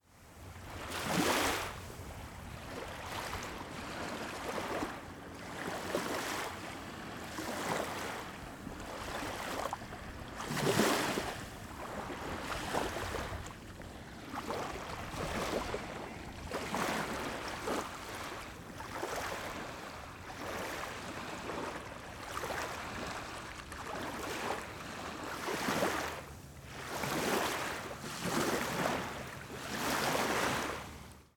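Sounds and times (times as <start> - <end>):
gentle surf rolling on a sandy beach, close up: 0.1 - 31.3.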